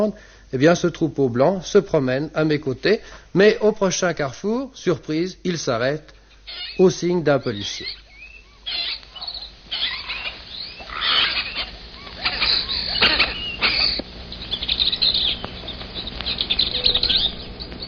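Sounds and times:
speech: 0.0s - 8.0s
tame parakeets calling in the streets of Cusco: 6.2s - 17.8s.

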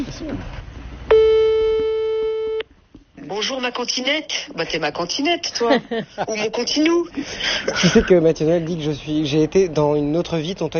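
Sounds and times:
speech: 0.2s - 0.6s, 3.3s - 10.7s
mobile phone call tone: 1.1s - 2.6s.

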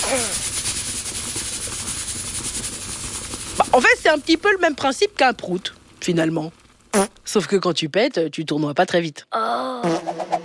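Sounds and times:
steam escaping from a pressure cooker: 0.0s - 6.2s
speech: 0.1s - 0.4s, 3.7s - 10.4s.

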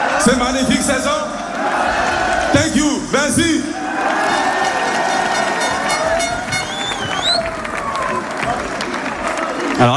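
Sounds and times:
stadium crowd cheering: 0.0s - 9.9s
speech: 0.2s - 3.8s, 9.8s - 9.9s
stadium crowd clapping: 4.8s - 9.8s.

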